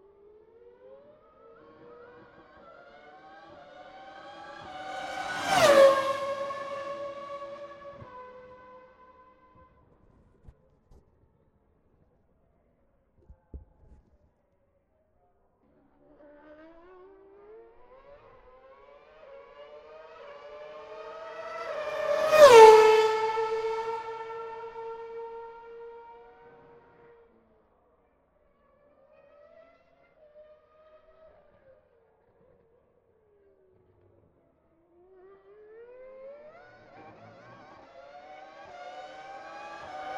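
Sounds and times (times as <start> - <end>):
Formula 1 V8 and V10 cars screaming past: 1.5 - 8.8, 19.1 - 26.6, 36.3 - 40.1.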